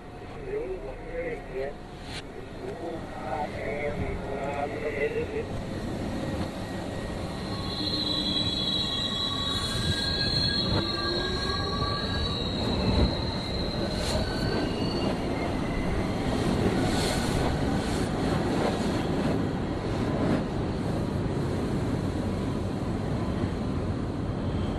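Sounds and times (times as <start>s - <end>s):
subway train on the 3 line between Clark Street and Atlantic Avenue: 0.0s - 24.7s
high metallic wheel squeals: 6.9s - 16.0s.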